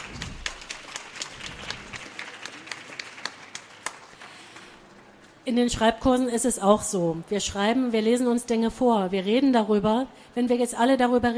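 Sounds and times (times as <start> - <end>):
audience applause: 0.0 - 5.0
speech: 5.5 - 11.3.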